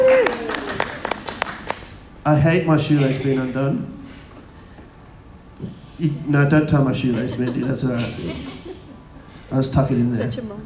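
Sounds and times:
round of applause: 0.0s - 2.0s
speech: 2.3s - 4.0s, 5.6s - 8.8s, 9.5s - 10.6s
laughter: 6.9s - 10.6s.

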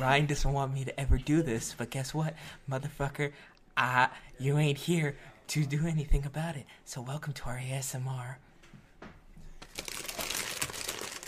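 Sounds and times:
speech: 0.0s - 8.4s
white fudge Oreos wrapper crinkling open: 9.6s - 11.2s.

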